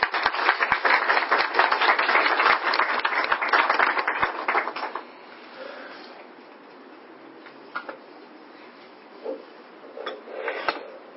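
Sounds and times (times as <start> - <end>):
audience applause at an academic gathering on Persian literature: 0.0 - 5.0.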